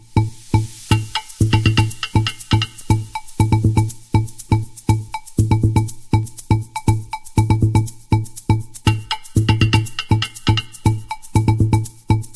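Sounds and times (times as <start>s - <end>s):
drum ensemble remix: 0.1s - 7.9s, 8.7s - 12.0s.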